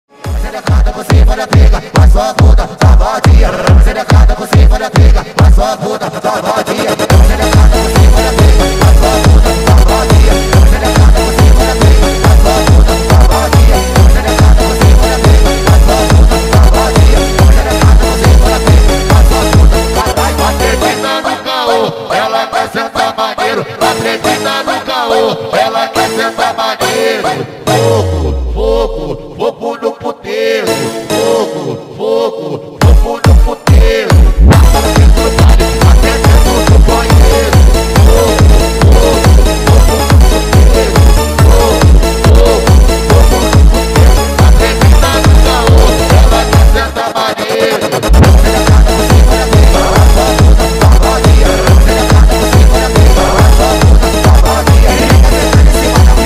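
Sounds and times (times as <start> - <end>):
phonk music: 0.1 - 56.2.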